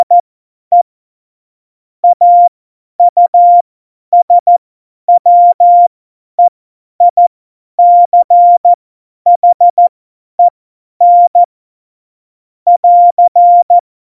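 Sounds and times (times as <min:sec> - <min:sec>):
CW Morse code beeps: 0:00.0 - 0:00.8, 0:02.0 - 0:03.6, 0:04.2 - 0:07.2, 0:07.8 - 0:11.5, 0:12.7 - 0:13.8.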